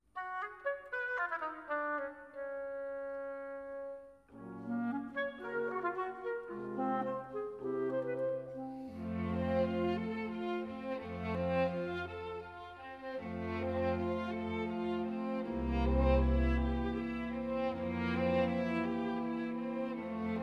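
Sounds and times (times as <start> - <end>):
instrumental music: 0.1 - 20.4.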